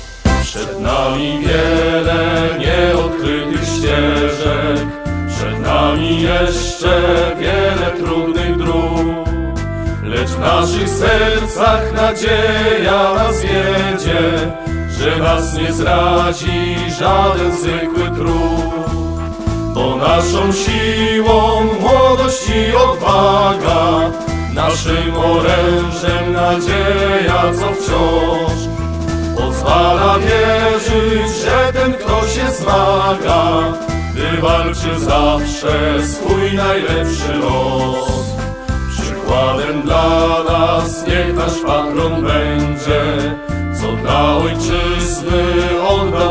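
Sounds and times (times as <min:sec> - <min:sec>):
hymn: 0:00.3 - 0:46.3.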